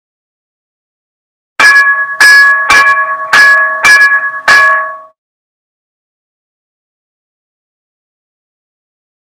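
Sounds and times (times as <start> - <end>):
station bell: 1.6 - 5.2.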